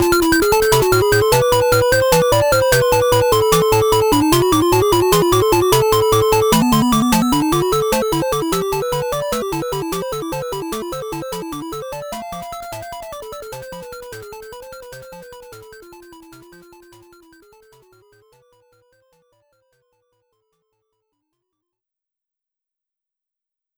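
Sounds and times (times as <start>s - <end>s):
stage background music: 0.0s - 16.8s.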